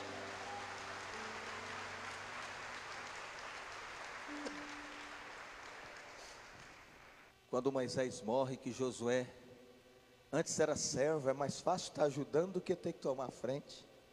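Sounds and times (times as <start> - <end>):
audience applauding: 0.0 - 7.3
speech: 7.5 - 9.4, 10.3 - 13.9.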